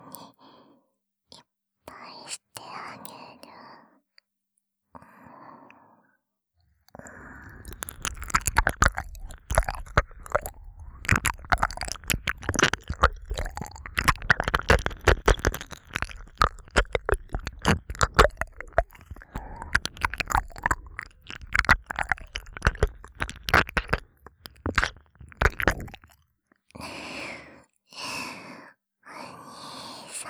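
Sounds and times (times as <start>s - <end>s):
ASMR ear licking sounds: 7.3s - 26.2s.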